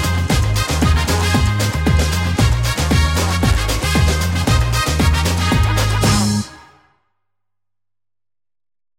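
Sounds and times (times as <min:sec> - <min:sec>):
samba version of a Christmas tune: 0:00.0 - 0:07.0.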